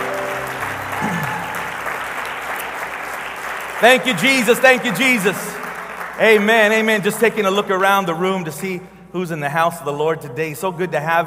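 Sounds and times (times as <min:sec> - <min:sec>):
audience applause: 0:00.0 - 0:06.9
speech: 0:03.8 - 0:05.6, 0:06.2 - 0:11.2.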